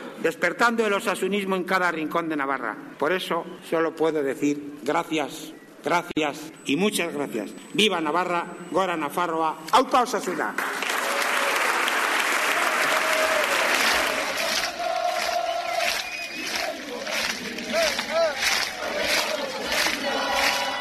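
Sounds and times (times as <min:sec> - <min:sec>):
speech: 0:00.2 - 0:10.9
rhythmic applause: 0:10.5 - 0:20.7
large stadium crowd chanting in unison: 0:12.4 - 0:20.7
whistles: 0:15.3 - 0:16.8.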